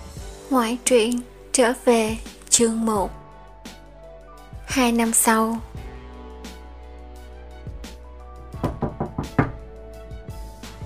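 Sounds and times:
speech: 0.5s - 3.2s, 4.7s - 5.8s
irregular knocking on a door: 8.6s - 9.7s.

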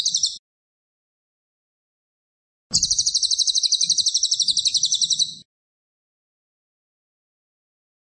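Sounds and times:
cililin singing fast shrill pulsed trills: 0.0s - 0.4s, 2.7s - 5.5s.

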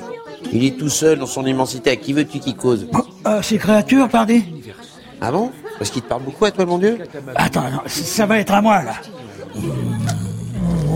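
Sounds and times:
speech: 0.5s - 9.8s
lion roaring: 9.6s - 10.9s.

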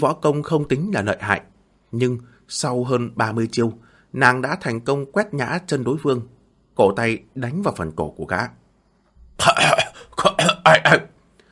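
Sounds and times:
speech: 0.0s - 8.6s, 9.4s - 9.8s, 10.6s - 11.1s
man coughing, clutching his throat: 9.4s - 11.1s.

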